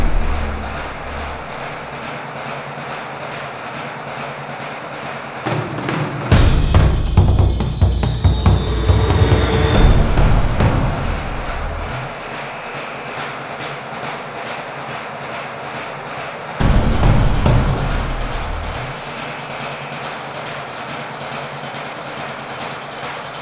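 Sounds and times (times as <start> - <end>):
suspense music: 0.0 - 1.9, 6.3 - 12.2, 16.6 - 19.2.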